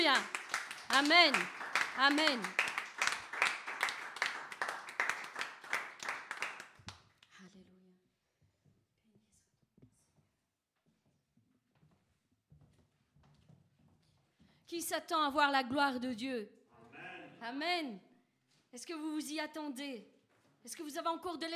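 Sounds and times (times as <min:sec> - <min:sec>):
speech: 0:00.0 - 0:02.7, 0:14.8 - 0:16.6, 0:17.4 - 0:18.1, 0:18.7 - 0:21.5
audience applause: 0:00.0 - 0:06.8.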